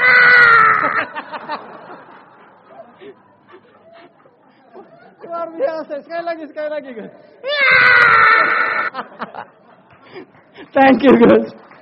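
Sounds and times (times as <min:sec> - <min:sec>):
voice imitating loud wailing crying with sobbing gasps: 0:00.0 - 0:01.1, 0:07.4 - 0:08.9
laughter: 0:00.3 - 0:06.2, 0:08.2 - 0:10.8
speech: 0:05.4 - 0:11.6.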